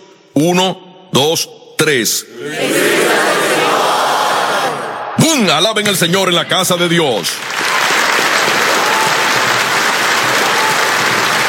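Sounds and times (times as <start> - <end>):
speech: 0.4 - 3.8, 5.2 - 7.6
audience shouting in unison: 2.4 - 5.2, 7.7 - 11.4.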